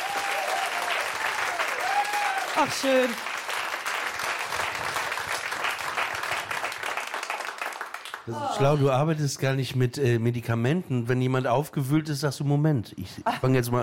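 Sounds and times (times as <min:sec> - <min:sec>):
audience applause: 0:00.0 - 0:08.9
speech: 0:02.6 - 0:03.3, 0:08.3 - 0:13.8.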